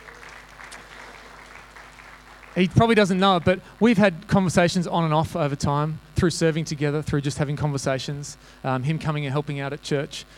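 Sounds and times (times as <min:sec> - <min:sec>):
audience applause: 0:00.0 - 0:03.5
speech: 0:02.6 - 0:10.3.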